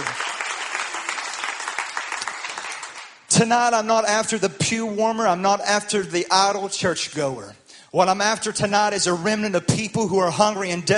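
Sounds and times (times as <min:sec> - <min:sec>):
audience hand clapping: 0:00.0 - 0:03.3
speech: 0:03.3 - 0:10.9.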